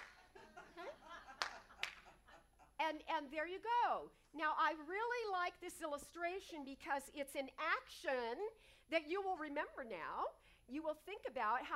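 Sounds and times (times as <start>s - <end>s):
hand clap to trigger a clapper: 0.0s - 0.3s, 1.3s - 2.2s
laughter: 0.0s - 2.8s
speech: 2.9s - 11.7s.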